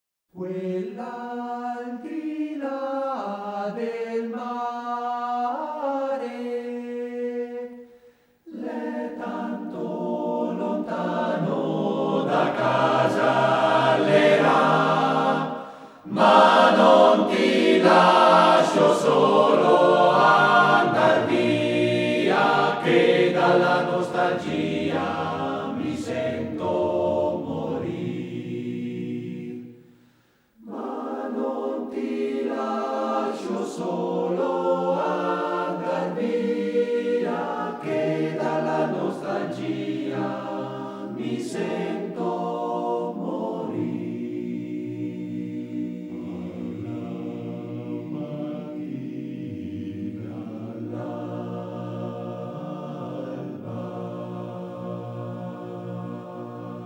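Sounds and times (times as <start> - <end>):
choir singing: 0.4 - 30.0, 30.6 - 56.8.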